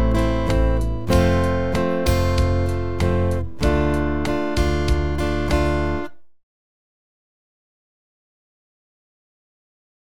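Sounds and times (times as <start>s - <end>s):
guitar chord progressions: 0.0s - 6.2s.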